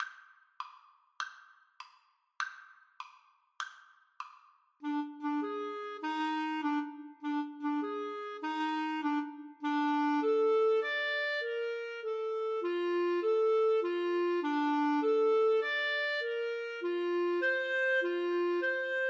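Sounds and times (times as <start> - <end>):
flute and clarinet duet: 4.8 - 19.0.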